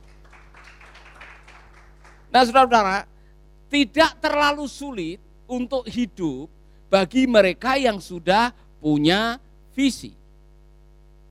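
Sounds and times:
audience applause: 0.0s - 2.3s
speech: 2.3s - 3.1s, 3.7s - 10.2s.

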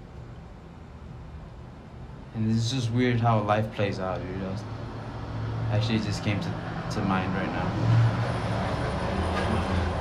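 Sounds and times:
speech: 2.4s - 4.8s, 5.7s - 8.2s
truck passing by fast: 4.6s - 10.0s.

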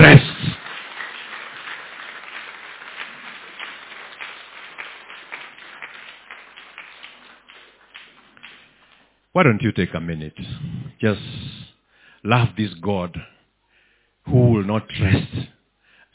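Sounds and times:
crowd clapping: 0.0s - 9.2s
speech: 9.4s - 13.4s, 14.3s - 15.6s.

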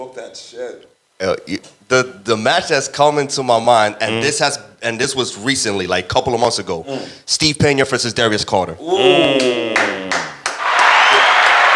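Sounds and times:
speech: 0.0s - 9.8s
clapping applause: 9.4s - 11.7s.

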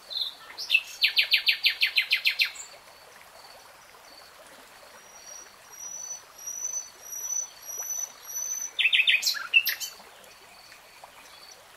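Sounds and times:
nightingale song: 0.1s - 2.7s, 5.0s - 11.6s.

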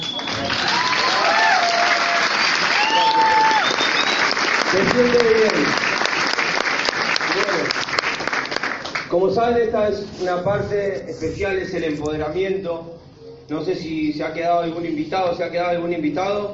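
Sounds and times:
audience applause: 0.0s - 9.1s
speech: 4.7s - 6.0s, 9.2s - 16.5s.

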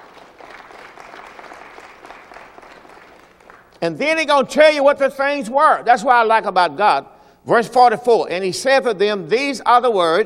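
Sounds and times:
audience hand clap applause: 0.0s - 3.8s
speech: 3.8s - 10.2s.

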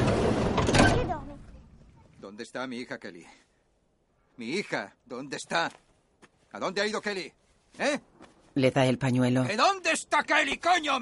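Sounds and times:
van side door sliding open: 0.0s - 1.2s
speech: 2.4s - 3.5s, 4.4s - 5.8s, 6.5s - 10.9s.

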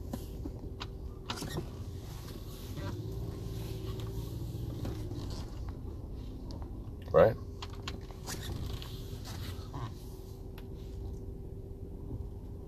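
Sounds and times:
low steady vehicle rumble: 0.0s - 12.6s
speech: 7.2s - 7.4s.

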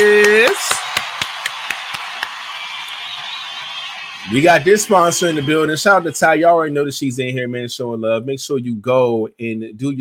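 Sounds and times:
round of applause: 0.0s - 6.2s
speech: 4.3s - 9.9s.

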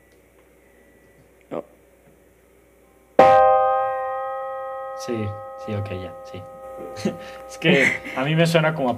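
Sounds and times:
speech: 1.5s - 1.8s, 5.0s - 8.9s
high-pitched minor chord struck on an instrument: 3.2s - 8.9s.

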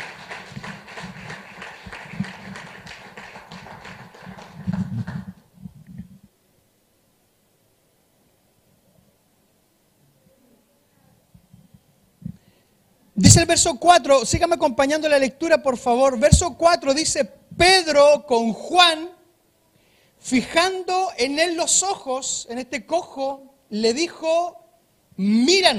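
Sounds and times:
audience applause: 0.0s - 5.4s
speech: 13.2s - 19.1s, 20.3s - 24.6s, 25.2s - 25.7s.

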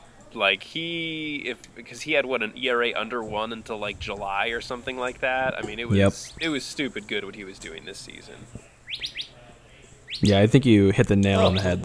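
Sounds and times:
speech: 0.3s - 9.1s, 10.2s - 11.8s
little bird chirping: 8.6s - 9.4s, 10.1s - 10.4s, 11.4s - 11.8s.

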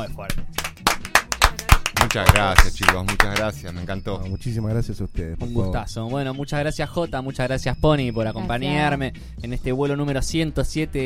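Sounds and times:
speech: 0.0s - 0.7s, 2.1s - 11.0s
small group applause: 0.5s - 3.6s.

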